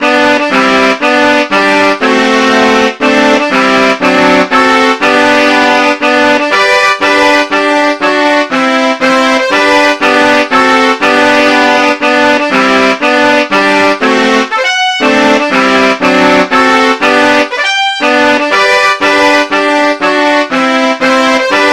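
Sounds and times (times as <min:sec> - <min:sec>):
birthday song: 0:00.0 - 0:21.7.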